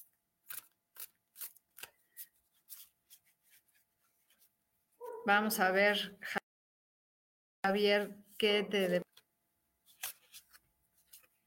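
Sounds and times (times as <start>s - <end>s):
tarot cards sticking together being shuffled: 0.4s - 3.8s, 9.9s - 11.4s
speech: 5.3s - 6.4s, 7.7s - 9.0s.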